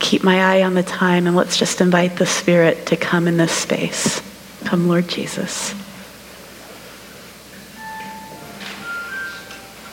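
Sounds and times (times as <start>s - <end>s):
low steady hum: 0.0s - 9.9s
speech: 0.1s - 5.9s
phone electronic beeping melody: 7.8s - 9.9s.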